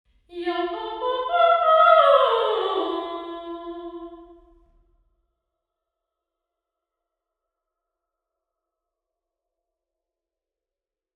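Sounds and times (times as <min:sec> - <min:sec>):
person singing for an impulse response in St Margarets church: 0:00.3 - 0:04.4.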